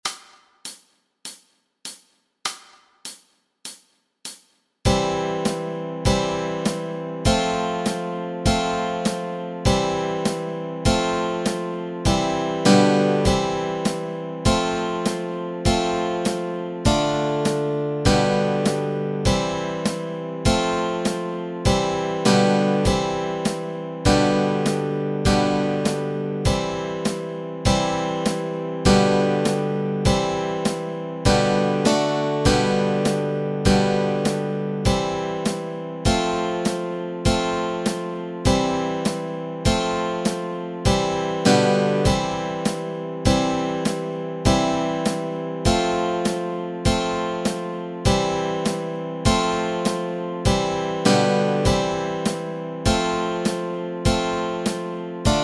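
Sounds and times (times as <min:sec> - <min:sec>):
chords: 0:04.9 - 0:55.4.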